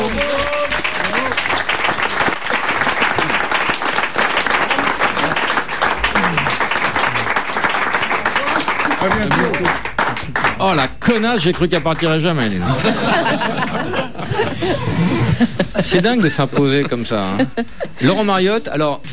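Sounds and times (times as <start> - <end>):
scattered voices and cheers: 0.0 - 1.4
crowd applauding: 0.0 - 15.3
speech: 10.6 - 14.1, 14.7 - 19.1
laughter: 12.6 - 18.3.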